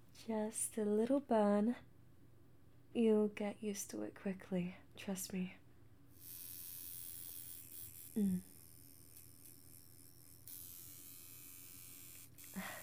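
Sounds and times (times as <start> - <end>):
speech: 0.2 - 1.9, 2.9 - 5.6, 8.2 - 8.5
tattoo machine needle buzzing: 6.1 - 12.8.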